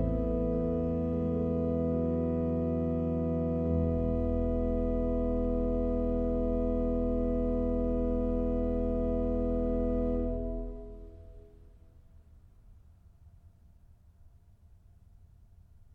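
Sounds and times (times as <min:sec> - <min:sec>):
organ chorale prelude: 0:00.0 - 0:11.6.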